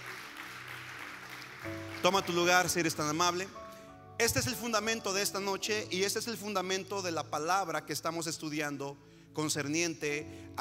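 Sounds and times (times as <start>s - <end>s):
audience applause: 0.0s - 2.9s
speech: 1.6s - 3.6s, 4.2s - 10.6s.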